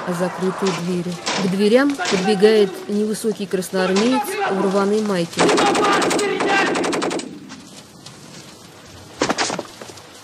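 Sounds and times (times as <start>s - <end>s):
speech: 0.0s - 6.8s
burst of automatic gunfire: 5.4s - 7.4s.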